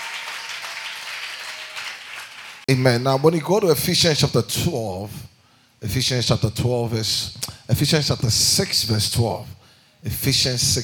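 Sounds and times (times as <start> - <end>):
audience clapping: 0.0 - 3.7
speech: 2.7 - 10.8.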